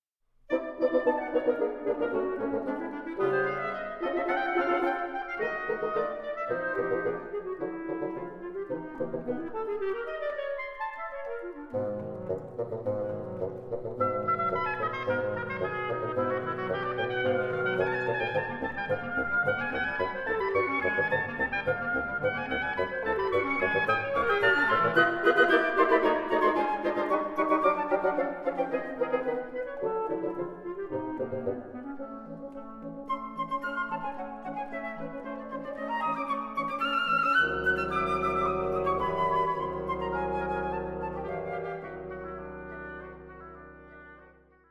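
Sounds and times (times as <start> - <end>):
wind quintet playing chamber music: 0.5 - 44.6.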